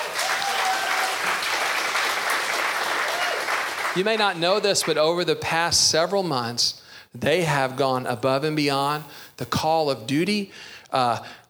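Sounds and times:
audience applause: 0:00.0 - 0:05.0
speech: 0:04.0 - 0:11.4.

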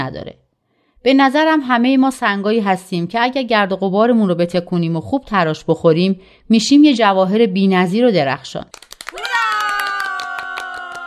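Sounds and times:
speech: 0:00.0 - 0:00.4, 0:01.0 - 0:08.8
people clapping: 0:08.7 - 0:11.0.

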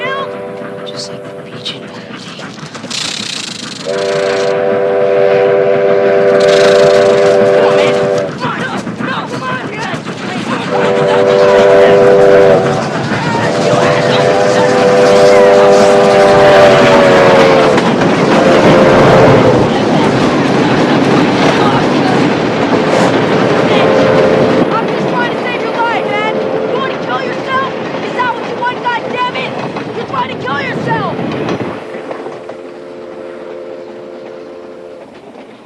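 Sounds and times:
chord-like train horn blasts: 0:00.0 - 0:01.5, 0:03.9 - 0:08.3, 0:10.7 - 0:19.7, 0:23.6 - 0:24.7, 0:25.9 - 0:27.1, 0:32.4 - 0:35.2
train rumbling along the tracks: 0:00.0 - 0:35.6
speech: 0:01.0 - 0:01.8.

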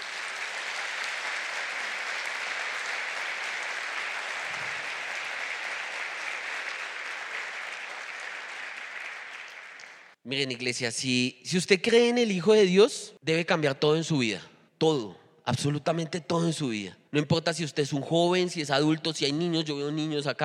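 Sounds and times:
audience applauding: 0:00.0 - 0:10.2
speech: 0:10.3 - 0:20.4.

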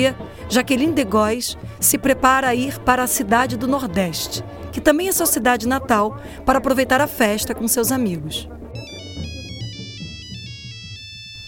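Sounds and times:
speech: 0:00.0 - 0:08.6
electronic phone ringtone of an incoming call: 0:08.8 - 0:11.4.

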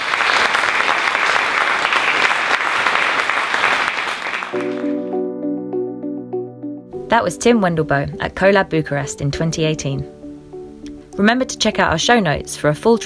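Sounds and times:
audience applause: 0:00.0 - 0:05.0
speech: 0:07.1 - 0:10.2, 0:11.2 - 0:13.0.

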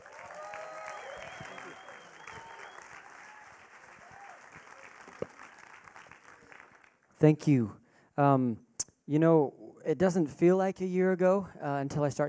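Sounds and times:
people whooping in a church audience: 0:00.0 - 0:05.7
church audience applause welcoming a pastor: 0:00.0 - 0:07.1
speech: 0:07.2 - 0:12.2.

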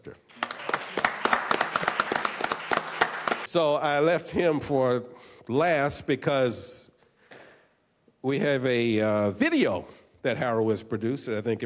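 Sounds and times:
sparse audience hand claps for an actor and writer at an event: 0:00.3 - 0:03.5
speech: 0:03.5 - 0:06.8, 0:08.2 - 0:11.6.

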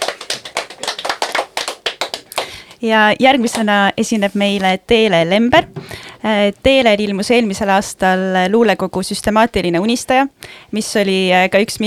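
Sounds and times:
applause from a small audience: 0:00.0 - 0:02.6
speech: 0:02.8 - 0:11.8.

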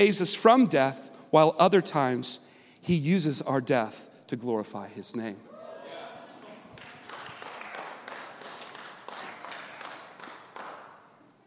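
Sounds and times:
speech: 0:00.0 - 0:06.0
people clapping in room: 0:06.4 - 0:11.4.

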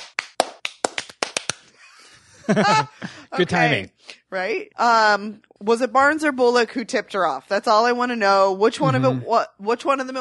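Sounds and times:
slow clap: 0:00.0 - 0:01.7
laughter: 0:01.8 - 0:03.8, 0:08.8 - 0:09.3
speech: 0:02.5 - 0:10.1.

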